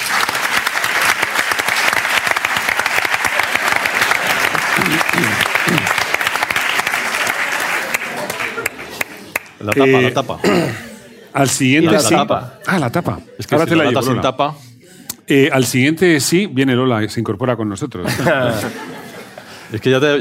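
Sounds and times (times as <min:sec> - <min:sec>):
audience applause: 0:00.0 - 0:10.1
laughter: 0:03.4 - 0:06.2, 0:07.4 - 0:14.2, 0:18.0 - 0:19.8
speech: 0:09.6 - 0:14.7, 0:15.3 - 0:19.0, 0:19.7 - 0:20.1.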